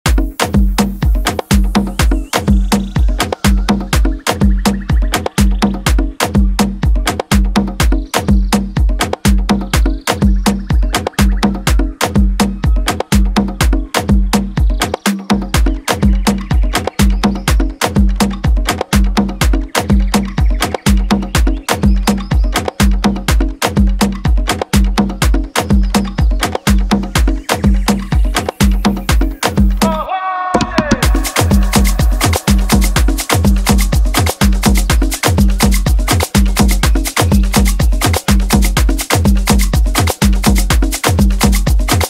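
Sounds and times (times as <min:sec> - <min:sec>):
afro house music: 0:00.0 - 0:42.0.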